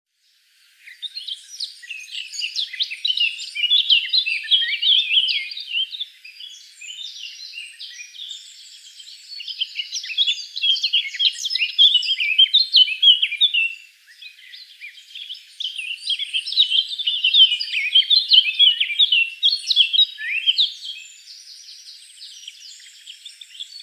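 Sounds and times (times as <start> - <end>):
Eurasian blackcap song: 0.8 - 23.8.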